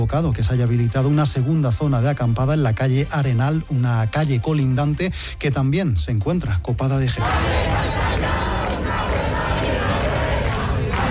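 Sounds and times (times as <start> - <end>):
speech: 0.0 - 8.2
large crowd of protesters chanting and shouting in a square: 7.0 - 11.0.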